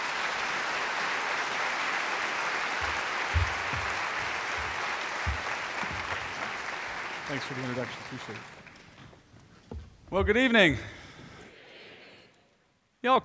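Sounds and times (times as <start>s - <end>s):
audience round of applause: 0.0s - 9.1s
speech: 7.3s - 8.6s, 10.1s - 11.0s, 13.0s - 13.2s.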